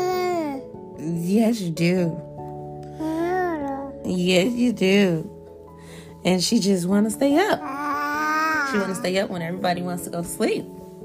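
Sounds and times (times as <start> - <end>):
speech: 1.3 - 2.3, 4.1 - 5.3, 6.2 - 7.8, 8.7 - 10.8
baby babbling and squealing: 3.0 - 3.9, 7.6 - 9.1.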